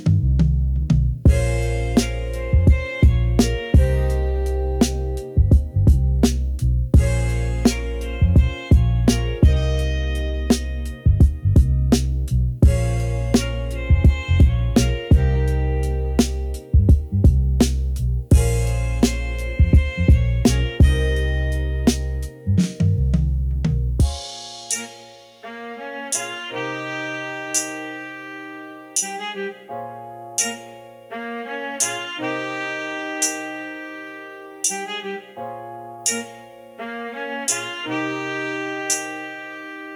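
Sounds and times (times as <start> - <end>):
boom bap beat: 0.0 - 28.1, 31.8 - 33.6, 37.4 - 39.5.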